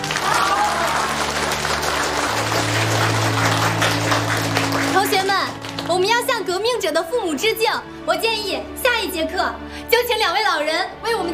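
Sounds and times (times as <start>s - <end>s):
crowd clapping: 0.0s - 6.5s
speech: 6.8s - 11.3s.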